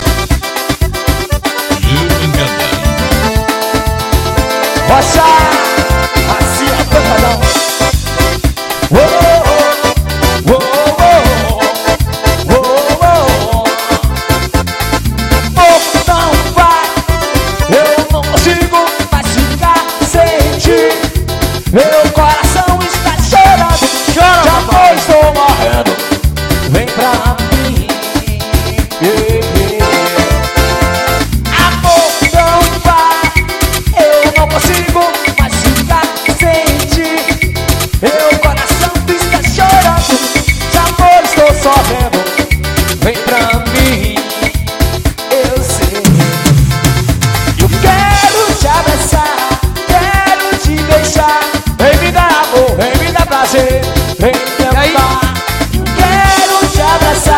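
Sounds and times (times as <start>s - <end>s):
live forró song: 0.0s - 57.3s.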